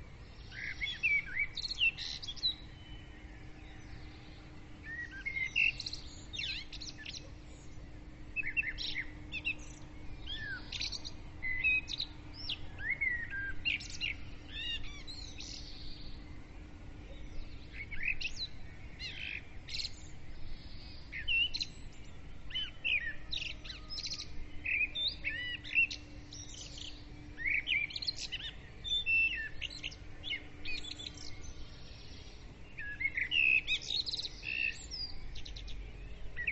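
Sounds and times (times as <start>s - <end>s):
birds singing: 0.0s - 36.4s
faint hum: 0.0s - 36.4s.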